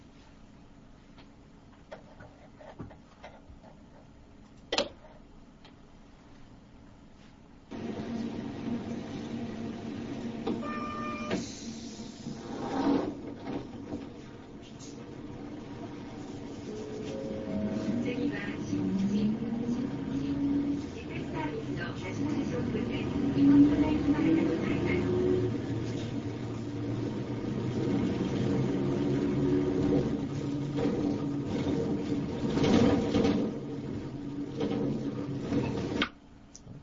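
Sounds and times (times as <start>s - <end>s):
moving bus engine rumble and road noise: 7.7s - 36.0s
rattles and clicks inside a bus: 29.7s - 36.1s.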